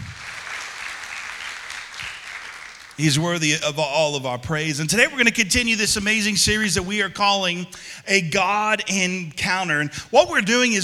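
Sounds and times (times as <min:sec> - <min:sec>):
audience applause: 0:00.0 - 0:03.3
speech: 0:03.0 - 0:10.8.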